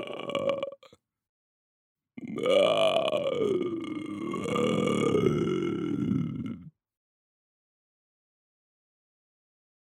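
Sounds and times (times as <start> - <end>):
foley creature vocalizations: 0.0 - 0.9, 2.2 - 6.7.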